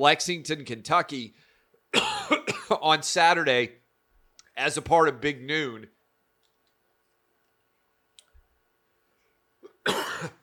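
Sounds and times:
speech: 0.0s - 2.1s, 2.7s - 3.8s, 4.6s - 6.0s
harsh cough: 1.9s - 2.8s, 9.6s - 10.4s
throat-clearing clicks: 9.6s - 10.4s.

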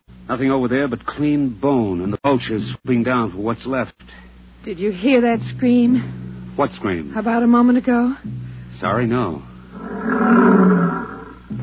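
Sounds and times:
speech: 0.3s - 9.5s
lions roaring: 9.7s - 11.6s.

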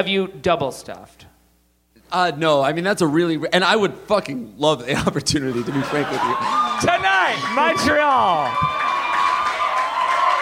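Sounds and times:
speech: 0.0s - 1.3s, 2.1s - 8.8s
laughter: 4.9s - 8.2s
crowd screaming and cheering: 5.5s - 10.3s.

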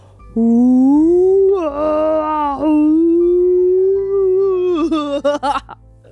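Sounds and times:
person imitating a whale call: 0.4s - 5.1s.

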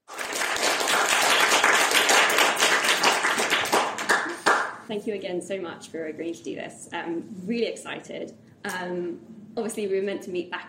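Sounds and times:
audience applause welcoming speakers to the stage: 0.0s - 4.8s
speech: 4.9s - 10.6s.

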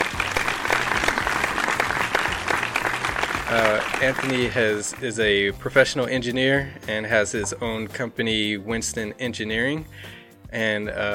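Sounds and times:
live audience applause welcoming a podcast guest: 0.0s - 5.0s
speech: 3.5s - 11.1s.

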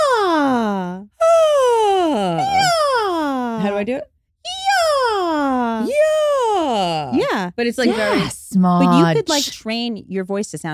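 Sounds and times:
voice imitating a siren: 0.0s - 3.7s, 4.5s - 7.2s
speech: 3.8s - 4.1s, 7.0s - 10.7s.

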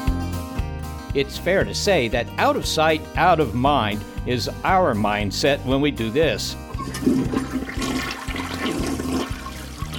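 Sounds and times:
speech: 1.2s - 8.2s
toilet flushing: 6.7s - 9.9s
toilet water gurgling: 6.7s - 9.9s.

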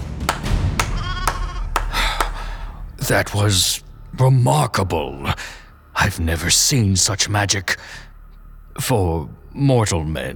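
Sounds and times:
ram bleating: 0.8s - 1.8s
speech: 3.0s - 8.1s, 8.8s - 10.3s.

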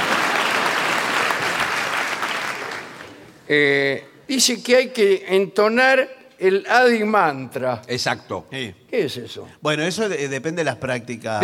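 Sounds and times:
audience applauding: 0.0s - 3.4s
speech: 3.5s - 11.4s.

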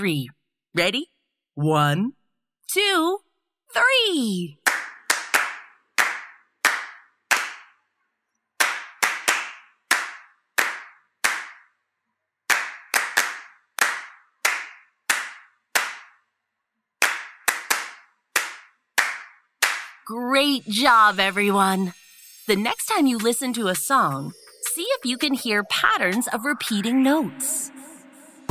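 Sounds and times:
speech: 0.0s - 4.6s, 20.1s - 27.8s
hands clapping a song rhythm: 4.6s - 7.8s, 8.6s - 11.7s, 12.5s - 16.2s, 17.0s - 20.0s.

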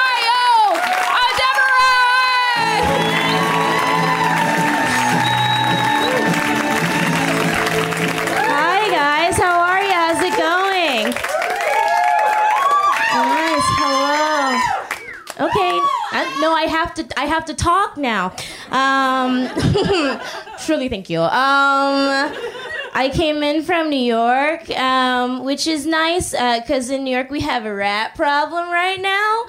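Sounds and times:
whooping and cheering voices: 0.0s - 9.2s, 9.8s - 16.6s
crowd applause: 0.0s - 16.4s
speech: 16.5s - 29.4s
laughter: 19.0s - 20.7s, 22.1s - 23.0s.

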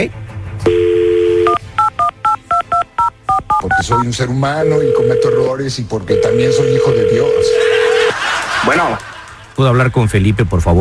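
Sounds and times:
speech: 0.0s - 0.2s, 3.7s - 7.9s, 8.6s - 10.7s
telephone dial tone: 0.7s - 3.1s, 4.6s - 8.1s
laughter: 7.4s - 9.6s.

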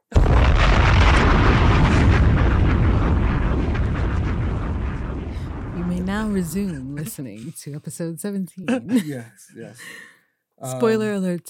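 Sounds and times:
bomb drop sound effect explosion: 0.0s - 7.2s
speech: 6.2s - 11.4s
laughter: 6.4s - 7.3s, 8.6s - 10.0s.

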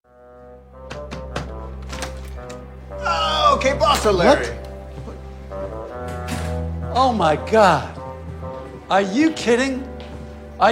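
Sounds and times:
knocking on a door: 0.8s - 1.7s
speech: 3.6s - 4.6s, 7.0s - 8.0s, 8.9s - 9.9s, 10.6s - 10.7s.

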